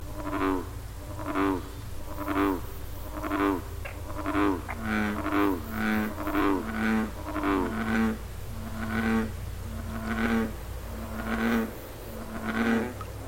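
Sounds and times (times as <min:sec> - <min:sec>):
bullfrog calling: 0:00.0 - 0:13.2.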